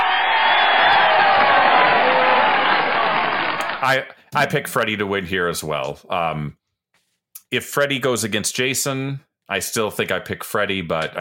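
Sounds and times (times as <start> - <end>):
crowd applause: 0.0 - 4.0
speech: 3.8 - 6.6, 7.5 - 11.1.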